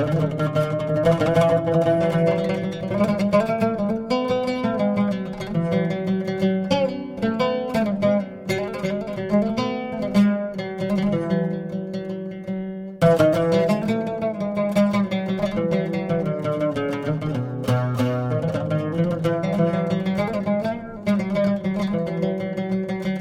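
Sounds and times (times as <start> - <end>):
oud improvisation: 0.0 - 23.2.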